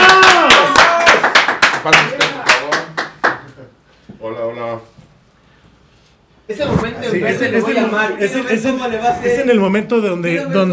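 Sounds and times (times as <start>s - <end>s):
hands clapping: 0.0s - 3.6s
speech: 6.5s - 10.7s.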